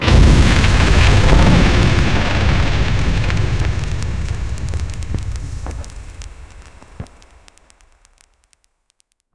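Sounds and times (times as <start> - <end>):
powerful magic casting explosive burst: 0.0 - 7.4.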